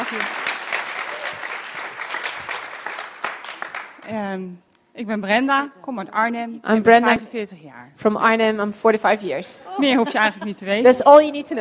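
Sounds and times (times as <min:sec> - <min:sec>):
audience applause: 0:00.0 - 0:04.0
speech: 0:00.1 - 0:00.4, 0:04.1 - 0:11.5.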